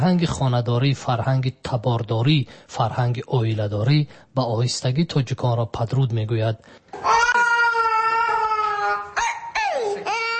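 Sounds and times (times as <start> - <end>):
speech: 0.0 - 7.2
infant crying: 7.0 - 10.3.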